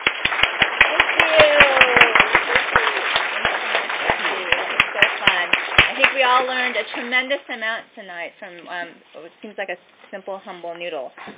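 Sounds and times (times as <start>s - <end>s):
applause: 0.0s - 7.1s
speech: 6.3s - 11.3s.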